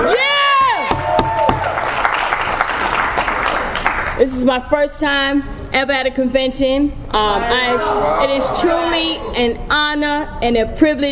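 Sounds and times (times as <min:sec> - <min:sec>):
convention audience applauding: 0:00.9 - 0:04.2
speech: 0:04.4 - 0:11.1.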